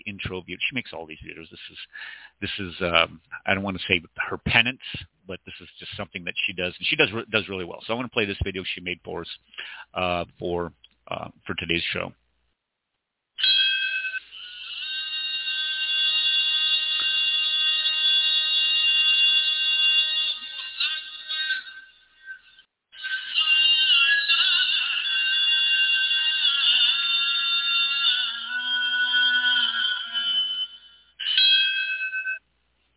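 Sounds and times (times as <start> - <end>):
speech: 0.2 - 12.2
remembrance bell for 9/11 ringing: 13.4 - 32.4.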